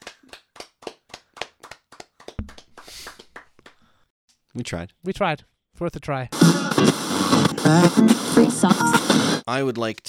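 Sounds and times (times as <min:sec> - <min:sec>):
hand clapping: 0:00.0 - 0:03.8
speech: 0:04.6 - 0:10.0.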